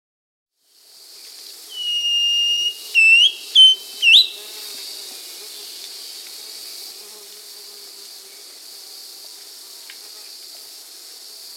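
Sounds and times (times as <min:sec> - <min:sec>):
Thrush-like schiffornis whistling song in South America: 0:01.7 - 0:04.5.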